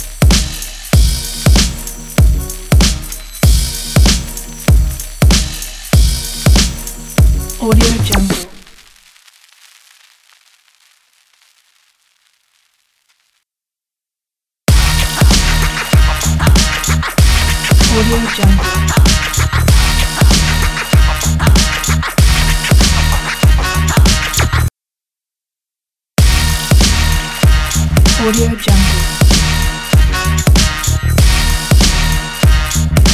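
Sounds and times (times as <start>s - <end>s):
aggressive fashion hip-hop beat: 0.0s - 8.7s, 14.7s - 24.7s, 26.2s - 33.1s.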